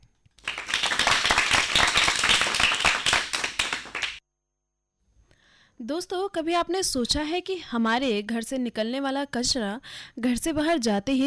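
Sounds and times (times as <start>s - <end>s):
applause and clapping: 0.4s - 4.2s
speech: 5.9s - 11.2s.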